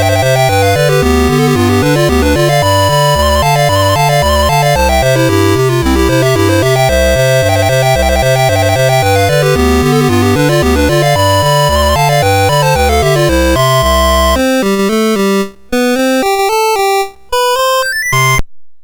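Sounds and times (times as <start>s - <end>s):
chiptune polka on MOS6581R2 sound chip: 0.0s - 18.4s.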